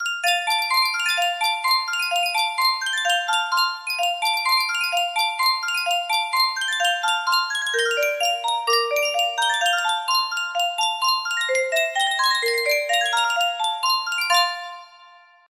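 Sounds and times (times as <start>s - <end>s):
Yunsheng music box melody: 0.0s - 15.5s.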